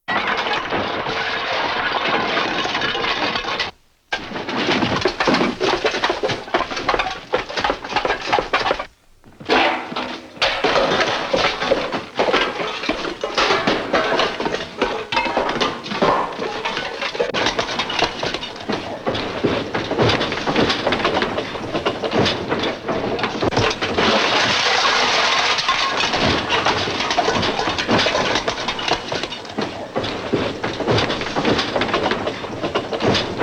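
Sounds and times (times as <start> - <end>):
crashes for earthquake or general destruction: 0.1 - 33.4.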